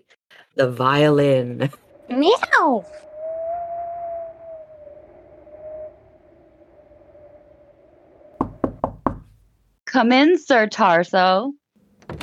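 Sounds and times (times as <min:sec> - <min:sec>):
speech: 0:00.6 - 0:03.1, 0:10.0 - 0:11.6
knock on a door: 0:08.4 - 0:09.3.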